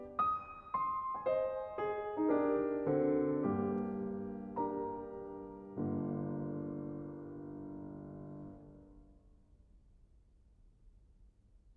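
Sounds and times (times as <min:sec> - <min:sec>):
piano improvisation in G minor: 0:00.0 - 0:09.0.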